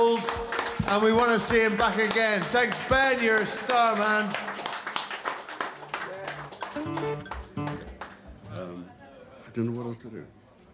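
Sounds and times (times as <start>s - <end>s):
audience round of applause: 0.0s - 8.3s
speech: 0.9s - 4.6s, 9.6s - 10.4s.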